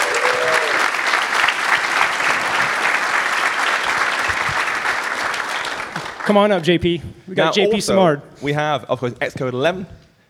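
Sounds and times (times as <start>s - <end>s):
audience applause: 0.0s - 6.7s
speech: 6.3s - 10.0s.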